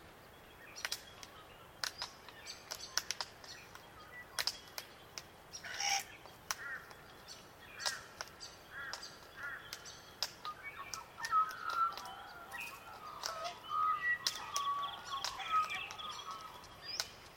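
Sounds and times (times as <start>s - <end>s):
Glossy black cockatoo calls: 5.6s - 6.9s, 7.8s - 17.1s.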